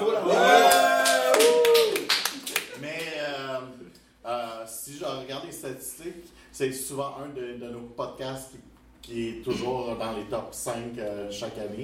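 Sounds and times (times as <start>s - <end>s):
excited audience voices: 0.0s - 3.1s
live audience clapping at a French recording session: 0.6s - 3.2s
speech: 5.7s - 11.8s.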